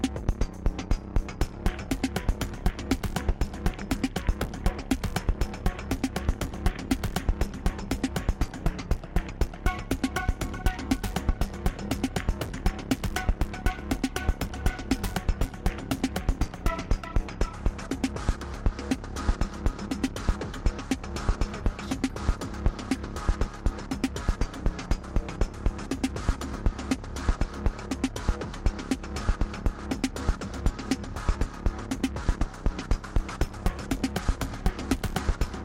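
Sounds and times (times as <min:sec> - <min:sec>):
Moog synth bass groove: 0:00.0 - 0:35.6.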